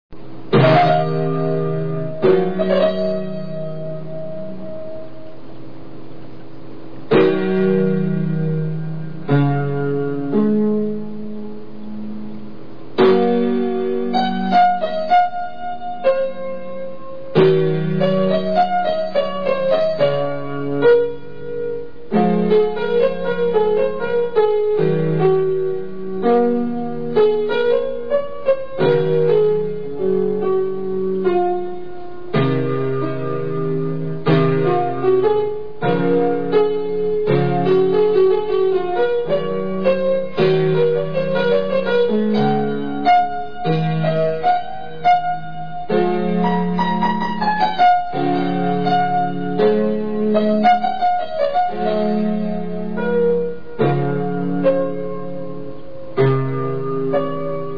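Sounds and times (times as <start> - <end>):
piano: 0.1 - 57.7.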